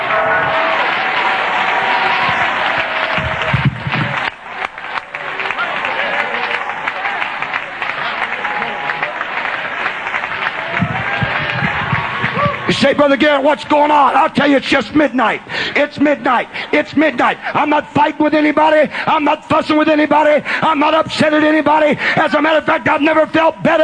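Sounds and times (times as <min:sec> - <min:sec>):
audience clapping hands: 0:00.0 - 0:13.7
speech: 0:13.0 - 0:23.8.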